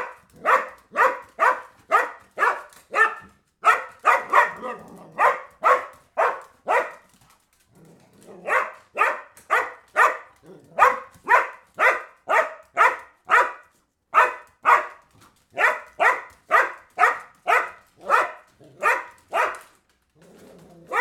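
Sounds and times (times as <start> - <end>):
dog barking: 0.0 - 7.1, 8.3 - 19.7.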